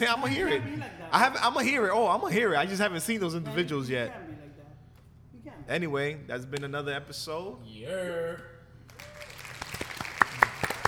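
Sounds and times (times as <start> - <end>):
laughter: 0.0 - 1.8
speech: 0.0 - 4.3, 5.7 - 8.5
hands clapping: 8.9 - 10.8.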